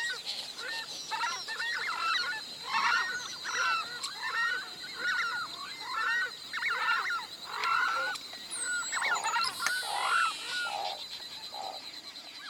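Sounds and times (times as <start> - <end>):
southern screamer calling: 0.0 - 11.8.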